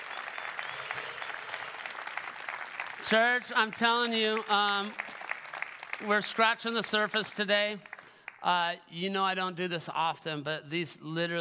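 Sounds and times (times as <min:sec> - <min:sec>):
church congregation applauding to welcome two guests: 0:00.0 - 0:08.5
speech: 0:03.1 - 0:05.1, 0:06.0 - 0:11.3.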